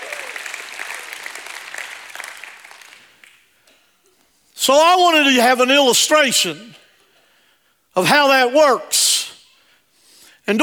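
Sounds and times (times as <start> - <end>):
crowd shouting and cheering: 0.0 - 1.3
crowd clapping: 0.0 - 3.6
speech: 4.7 - 6.8, 8.0 - 9.3.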